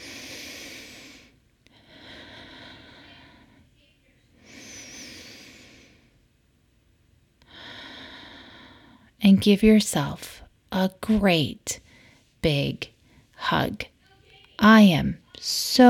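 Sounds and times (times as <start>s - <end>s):
slow deep breathing during a guided breathing exercise: 0.0s - 3.7s, 4.4s - 6.2s, 7.4s - 9.2s, 11.8s - 13.4s
speech: 9.2s - 11.8s, 12.4s - 13.9s, 14.6s - 15.8s.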